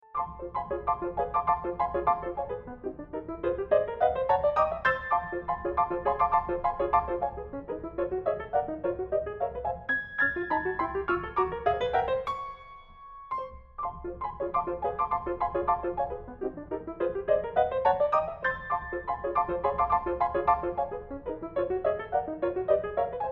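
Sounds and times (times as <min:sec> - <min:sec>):
Steinway piano: 0:00.0 - 0:23.2.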